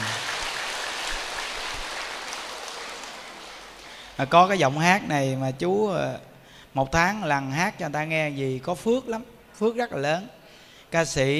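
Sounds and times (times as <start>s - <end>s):
audience applause: 0.0s - 4.3s
speech: 4.2s - 11.3s.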